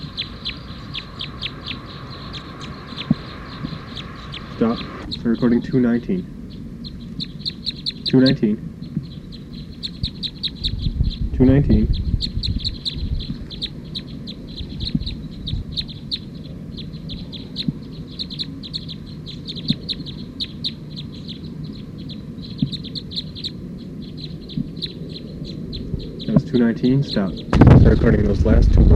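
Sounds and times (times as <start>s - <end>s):
bird calling: 0.0s - 28.9s
speech: 4.6s - 6.4s, 8.1s - 8.7s, 11.4s - 12.0s, 26.6s - 28.9s.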